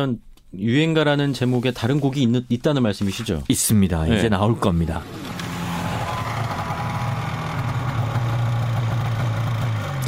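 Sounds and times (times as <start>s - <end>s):
speech: 0.0s - 5.4s
motorbike engine: 4.6s - 10.0s.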